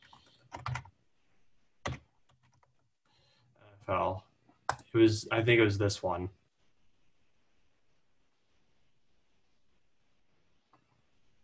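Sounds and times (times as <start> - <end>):
typing on a computer keyboard: 0.0 - 0.9, 1.8 - 2.8
speech: 3.9 - 4.3, 4.9 - 6.4.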